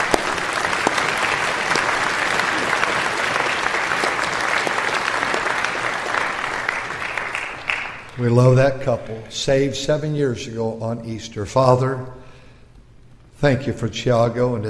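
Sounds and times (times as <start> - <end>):
crowd applauding a couple in a church: 0.0 - 8.3
speech: 8.2 - 12.2, 13.4 - 14.6.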